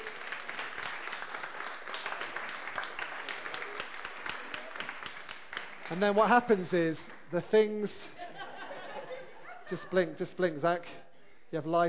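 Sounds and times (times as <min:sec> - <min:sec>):
audience applause: 0:00.0 - 0:06.5
speech: 0:05.9 - 0:08.2, 0:09.7 - 0:11.8
laughter: 0:08.0 - 0:10.2.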